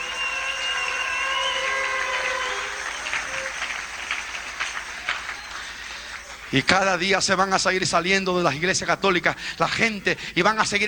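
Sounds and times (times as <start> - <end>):
audience applause: 0.0 - 6.8
speech: 6.5 - 10.8.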